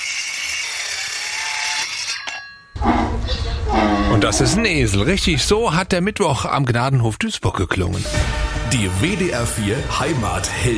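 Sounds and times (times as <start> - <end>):
sawing: 0.0 - 5.1
speech: 4.2 - 10.7.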